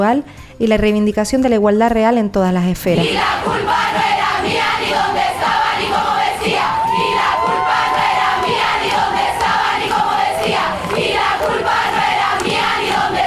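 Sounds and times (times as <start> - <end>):
speech: 0.0 - 4.6
protest crowd chanting at a demonstration in Santiago de Chile: 3.0 - 13.2.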